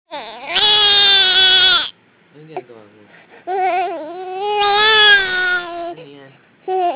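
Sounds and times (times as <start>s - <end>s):
hungry baby girl crying: 0.1s - 2.0s, 3.5s - 6.0s, 6.7s - 6.9s.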